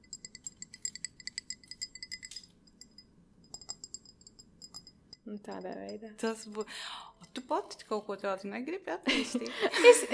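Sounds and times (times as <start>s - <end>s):
tapping on a glass: 0.0s - 7.4s
speech: 5.3s - 10.1s.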